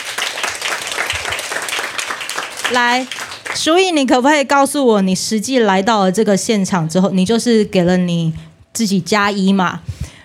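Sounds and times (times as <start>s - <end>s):
audience applause: 0.0s - 3.6s
speech: 2.7s - 10.0s.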